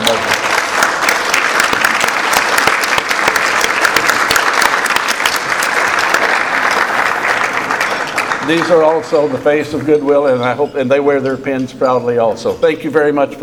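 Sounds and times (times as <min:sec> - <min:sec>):
audience applause for current and former board of directors members: 0:00.0 - 0:09.6
speech: 0:08.5 - 0:13.4.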